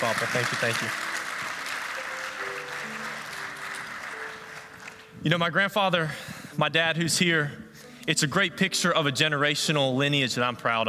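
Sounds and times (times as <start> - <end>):
speech: 0.0 - 1.2, 5.2 - 10.8
audience applause: 0.0 - 5.1.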